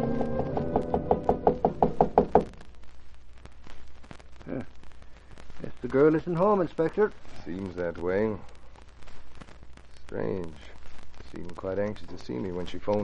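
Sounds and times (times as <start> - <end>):
knocking on apartment door: 0.2 - 2.5
speech: 5.9 - 8.5, 10.1 - 10.8, 11.3 - 13.0.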